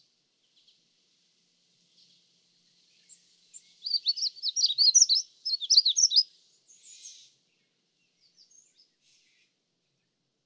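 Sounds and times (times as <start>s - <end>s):
magnolia warbler song of high quick warbled notes: 1.9s - 9.5s.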